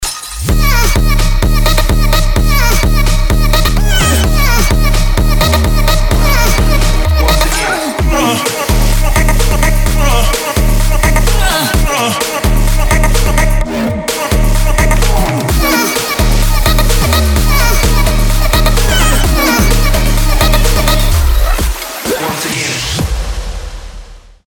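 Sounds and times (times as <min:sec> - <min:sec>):
funk music: 0:00.2 - 0:23.1.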